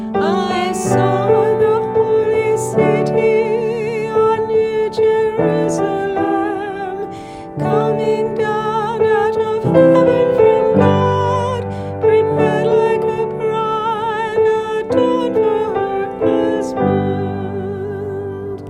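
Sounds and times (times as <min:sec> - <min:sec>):
antiphon chant: 0:00.1 - 0:18.6.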